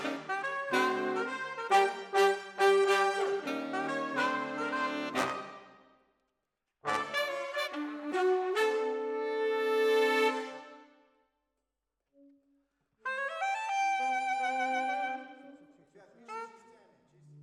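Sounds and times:
saxophone: 0:00.0 - 0:05.7, 0:06.9 - 0:10.9, 0:13.0 - 0:15.7.

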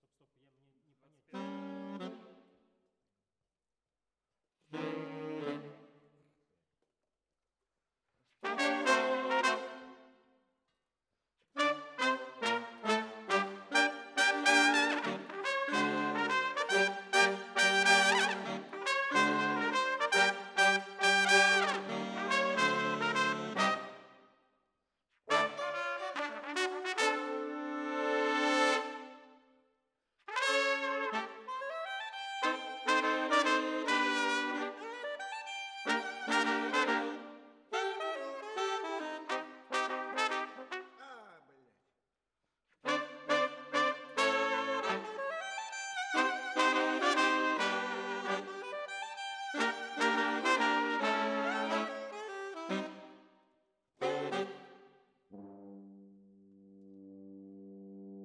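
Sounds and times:
brass instruments: 0:01.3 - 0:02.4, 0:04.7 - 0:05.9, 0:08.4 - 0:10.0, 0:11.6 - 0:24.1, 0:25.3 - 0:29.4, 0:30.3 - 0:41.4, 0:42.8 - 0:53.3, 0:54.0 - 0:56.0.

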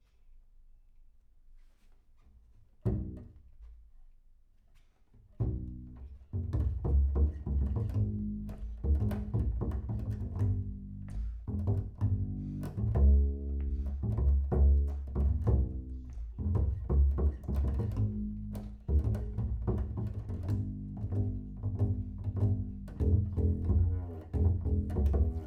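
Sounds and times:
bass sound: 0:05.4 - 0:25.4.

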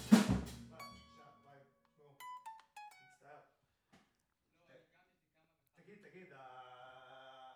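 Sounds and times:
vocals: 0:00.3 - 0:02.2, 0:05.7 - 0:07.5.

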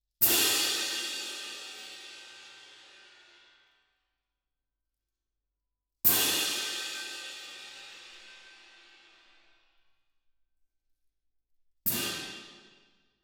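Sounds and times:
percussion: 0:00.2 - 0:03.8, 0:06.0 - 0:09.8, 0:11.8 - 0:13.2.

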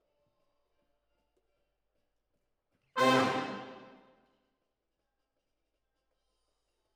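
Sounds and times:
horns playing: 0:03.0 - 0:04.0.

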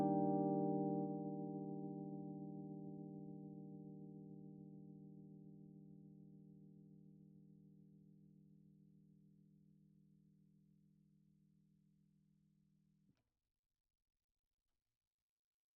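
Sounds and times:
Rhodes electric piano: 0:00.0 - 0:06.4.

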